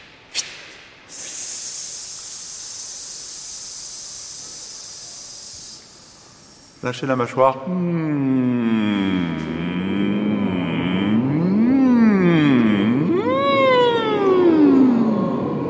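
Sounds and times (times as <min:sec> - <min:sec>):
speech: 0:06.8 - 0:08.4
choir singing vocal siren glides: 0:09.4 - 0:15.6.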